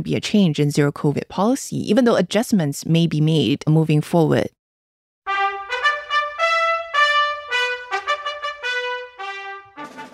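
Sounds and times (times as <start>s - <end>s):
speech: 0.0s - 4.6s
instrumental national anthem: 5.3s - 10.1s.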